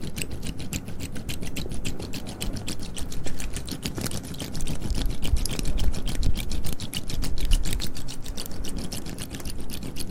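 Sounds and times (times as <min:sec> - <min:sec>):
soft wet mouth clicks and smacks: 0:00.0 - 0:10.0.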